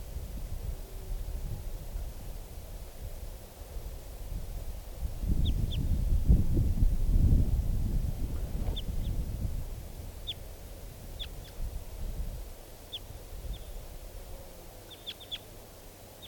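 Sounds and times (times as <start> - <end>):
low rumble of wind-like noise: 0.0 - 14.3
wild bird calling: 14.9 - 15.5.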